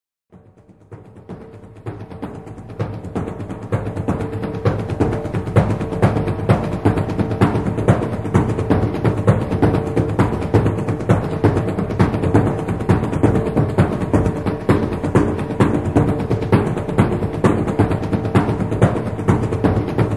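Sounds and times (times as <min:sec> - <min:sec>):
nagara drum: 0:00.3 - 0:20.1.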